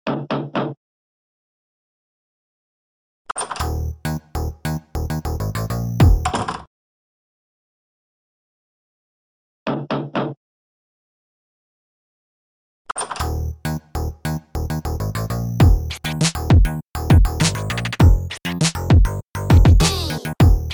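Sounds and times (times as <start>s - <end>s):
instrumental music: 3.6s - 6.3s, 13.2s - 20.7s.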